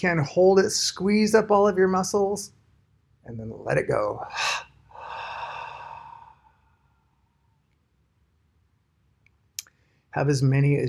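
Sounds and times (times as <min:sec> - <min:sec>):
speech: 0:00.0 - 0:02.6, 0:03.2 - 0:04.7, 0:10.1 - 0:10.8
deep cleansing breath during a breathing exercise: 0:04.3 - 0:07.6.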